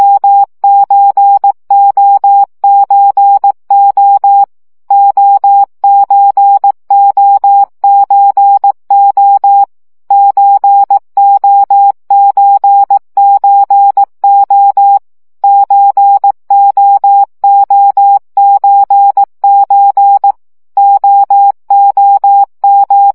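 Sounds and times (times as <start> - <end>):
CW practice signal at 15 baud: 0.0 - 23.1.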